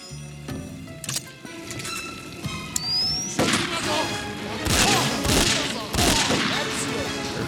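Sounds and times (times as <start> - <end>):
continuous video game soundscape: 0.0 - 7.4
Magnum handgun shots in a video game: 4.7 - 6.6.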